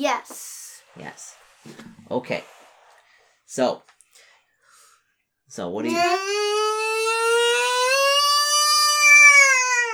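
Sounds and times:
speech: 0.0 - 2.6, 3.5 - 3.9, 5.5 - 6.6
electronic alarm blaring: 5.9 - 9.9.

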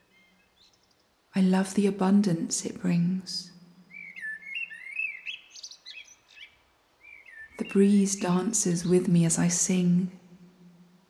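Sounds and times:
speech: 1.4 - 3.5, 7.7 - 10.2
blackbird singing: 3.9 - 7.8.

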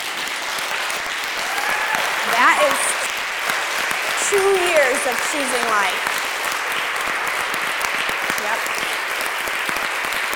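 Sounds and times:
room audience applauding: 0.0 - 10.3
speech: 4.3 - 6.2.

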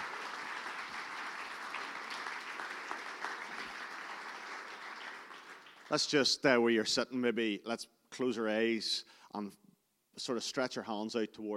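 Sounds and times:
audience applause: 0.0 - 6.3
speech: 5.9 - 9.6, 10.2 - 11.5.

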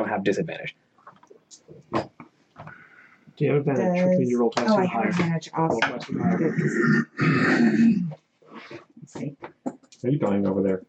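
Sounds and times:
speech: 0.2 - 0.9, 1.5 - 2.8, 3.4 - 10.8
person clearing throat: 6.3 - 8.2.

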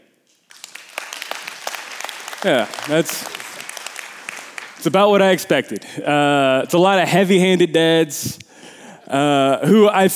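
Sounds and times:
audience round of applause: 0.3 - 6.1
speech: 2.4 - 3.4, 4.8 - 8.5, 9.1 - 10.1.

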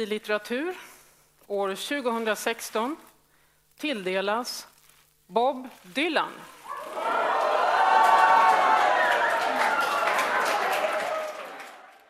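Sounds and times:
speech: 0.0 - 0.9, 1.5 - 3.1, 3.8 - 4.7, 5.3 - 6.6
audience cheering in a hall: 6.6 - 12.0.

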